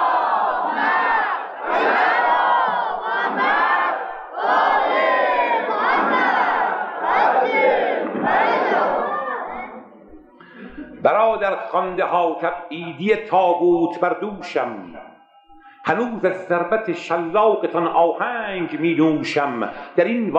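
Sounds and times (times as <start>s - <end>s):
large crowd chanting a salawat in unison: 0.0s - 10.1s
speech: 11.0s - 15.1s, 15.9s - 20.3s.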